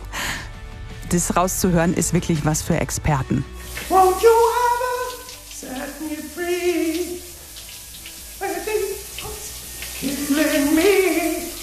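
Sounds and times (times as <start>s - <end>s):
speech: 1.1s - 4.3s
shower water running: 3.5s - 11.6s.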